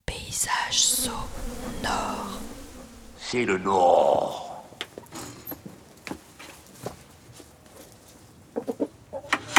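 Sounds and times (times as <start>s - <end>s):
speech: 0.4s - 2.5s, 3.3s - 4.4s
hens clucking in a village farmyard at Amblin-les-Prés: 8.6s - 9.5s.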